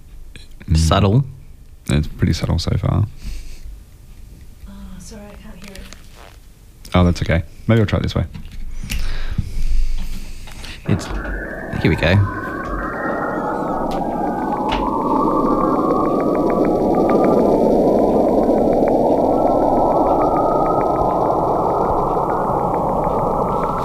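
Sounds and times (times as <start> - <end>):
speech: 0.4 - 3.4, 6.9 - 8.5, 11.8 - 12.4
dense hissing electronic roar in a space recording: 10.8 - 23.8
slowly sweeping warbling tones: 10.8 - 23.8
faint rapid ticking pulse: 10.9 - 23.8.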